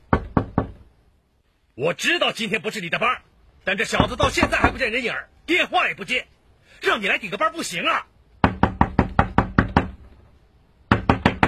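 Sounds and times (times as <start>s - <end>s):
knocking on a door: 0.1s - 0.8s, 4.0s - 4.8s, 8.4s - 10.1s, 10.9s - 11.4s
speech: 1.8s - 8.1s.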